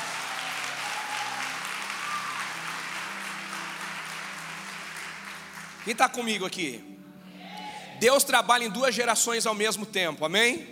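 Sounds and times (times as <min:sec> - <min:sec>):
audience applause: 0:00.0 - 0:06.4
speech: 0:05.8 - 0:06.9, 0:08.0 - 0:10.7.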